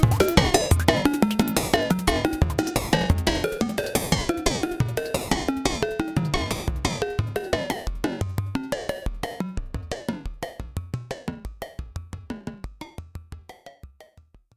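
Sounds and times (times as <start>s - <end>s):
synthesizer arpeggio with effects: 0.0s - 10.6s.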